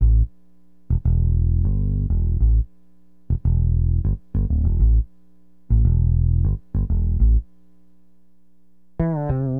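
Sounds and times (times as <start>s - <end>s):
acid jazz funk bass: 0.0s - 2.7s, 3.3s - 5.1s, 5.7s - 7.5s, 9.0s - 9.5s.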